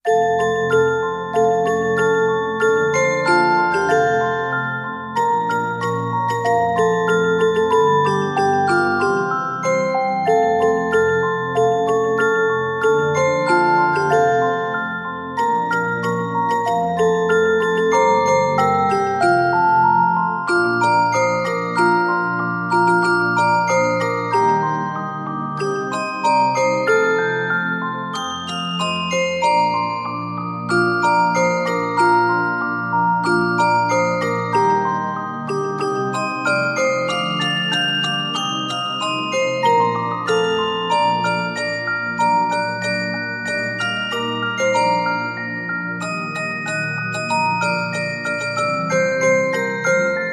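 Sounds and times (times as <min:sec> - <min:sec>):
carillon bells playing a Christmas tune: 0:00.0 - 0:50.3.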